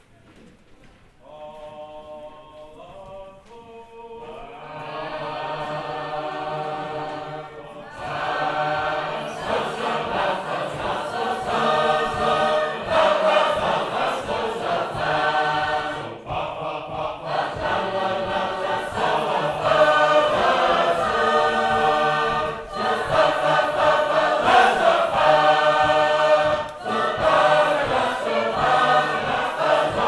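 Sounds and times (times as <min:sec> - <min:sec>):
Sacred Harp shape-note choir singing: 0:01.2 - 0:30.0.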